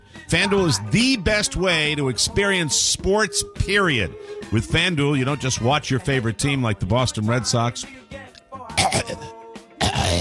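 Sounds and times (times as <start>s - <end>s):
speech: 0.3s - 8.2s
person clearing throat: 8.8s - 10.1s.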